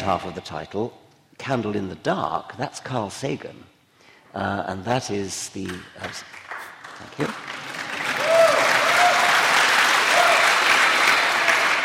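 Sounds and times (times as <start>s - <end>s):
speech: 0.0s - 3.7s, 4.4s - 6.4s, 7.0s - 7.5s
audience applause: 6.3s - 11.8s.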